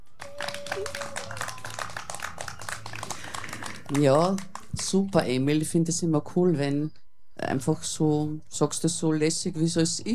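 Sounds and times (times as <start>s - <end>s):
small applause: 0.0s - 5.0s
speech: 3.9s - 10.1s.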